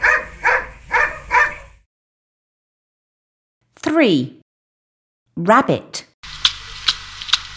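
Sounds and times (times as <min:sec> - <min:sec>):
dog barking: 0:00.0 - 0:01.8
speech: 0:03.9 - 0:04.4, 0:05.4 - 0:06.1.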